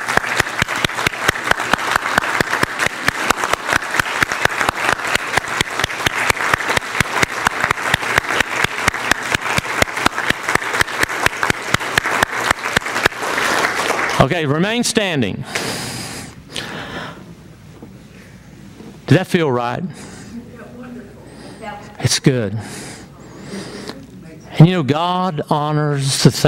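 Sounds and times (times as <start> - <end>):
standing audience applause: 0.0 - 14.6
speech: 14.4 - 15.8, 19.1 - 20.1, 22.0 - 22.9, 24.6 - 26.4.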